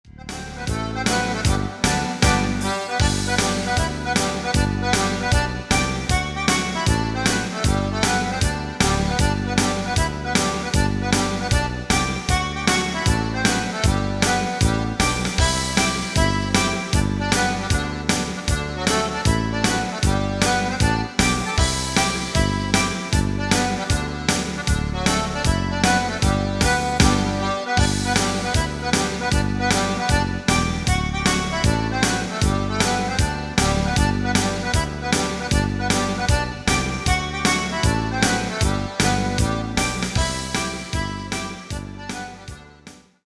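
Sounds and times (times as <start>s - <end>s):
small schottische dance music: 0.2s - 42.7s.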